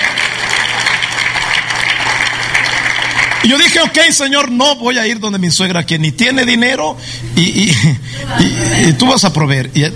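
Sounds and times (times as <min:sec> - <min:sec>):
audience applauding: 0:00.0 - 0:04.2
speech: 0:03.4 - 0:09.9.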